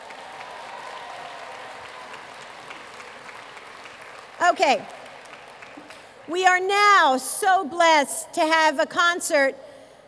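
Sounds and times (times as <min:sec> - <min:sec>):
audience round of applause: 0:00.0 - 0:06.3
speech: 0:04.4 - 0:05.0, 0:06.3 - 0:09.7.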